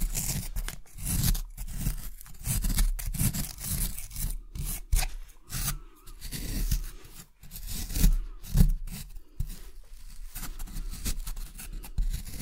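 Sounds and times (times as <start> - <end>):
excavation kit scraping and rubbing: 0.0 - 12.4.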